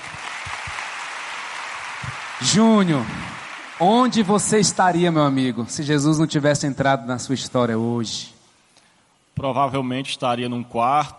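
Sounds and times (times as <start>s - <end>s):
audience applause: 0.0s - 5.0s
speech: 2.4s - 3.2s, 3.8s - 8.4s, 9.4s - 11.1s.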